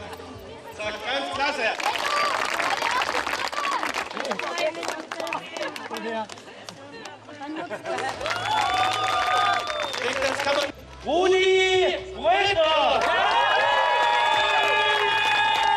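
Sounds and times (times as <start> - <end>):
speech: 0.8 - 2.0, 4.3 - 6.5, 7.5 - 9.2, 10.0 - 13.2
applause at an award ceremony: 1.6 - 7.2, 7.8 - 10.7, 13.0 - 15.7.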